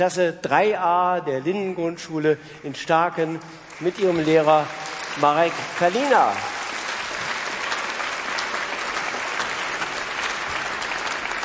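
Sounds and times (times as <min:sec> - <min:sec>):
speech: 0:00.0 - 0:06.6
audience applause: 0:03.4 - 0:11.4.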